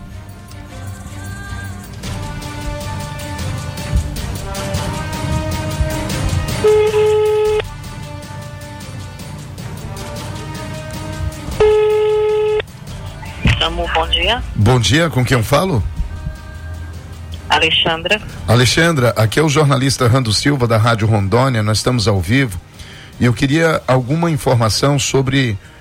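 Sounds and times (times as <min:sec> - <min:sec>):
continuous sound: 0:00.0 - 0:25.6
telephone ringing tone while calling the SAMU emergency service: 0:11.6 - 0:12.6
speech: 0:14.3 - 0:16.0, 0:17.6 - 0:25.7.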